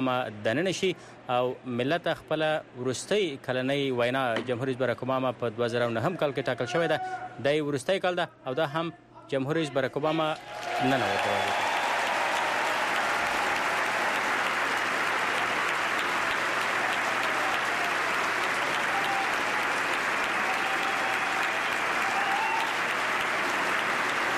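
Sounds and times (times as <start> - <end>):
speech: 0.0 - 11.7
applause of lawmakers in Congress: 10.4 - 24.3.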